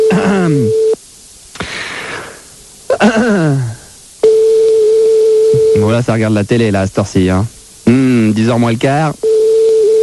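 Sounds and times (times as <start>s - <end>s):
telephone line tone: 0.0s - 1.0s, 4.2s - 6.0s, 9.2s - 10.0s
speech: 6.0s - 9.2s.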